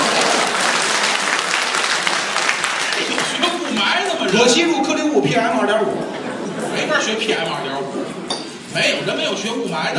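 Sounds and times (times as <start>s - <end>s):
crowd applause: 0.0s - 5.0s
laughter: 2.9s - 8.3s
speech: 4.3s - 6.2s, 6.8s - 9.9s.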